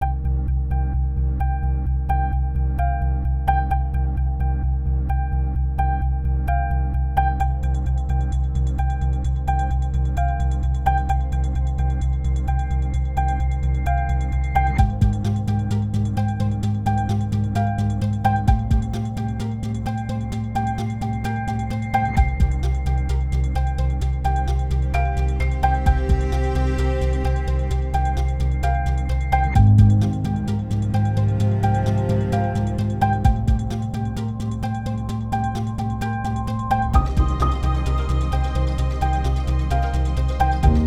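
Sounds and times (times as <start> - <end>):
tension music: 0.0 - 40.8.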